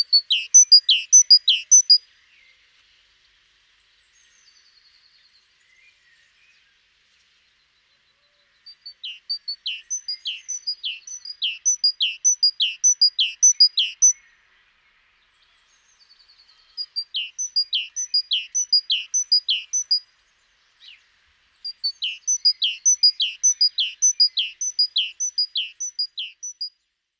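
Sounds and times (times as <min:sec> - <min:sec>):
great tit song: 0:00.0 - 0:02.0, 0:09.1 - 0:14.2, 0:16.8 - 0:20.0, 0:21.7 - 0:26.7
thin rapid trill of another bird: 0:00.0 - 0:02.0, 0:09.4 - 0:14.2, 0:16.7 - 0:20.0, 0:21.7 - 0:26.7.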